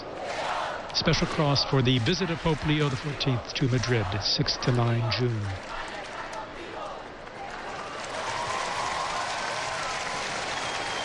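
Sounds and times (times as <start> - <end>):
applause: 0.9 - 4.0, 4.8 - 6.5, 7.2 - 11.0
speech: 1.0 - 5.7.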